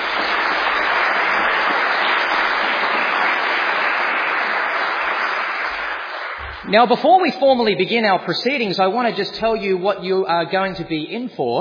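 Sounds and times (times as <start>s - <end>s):
crowd applause: 0.0s - 7.0s
speech: 6.7s - 11.5s.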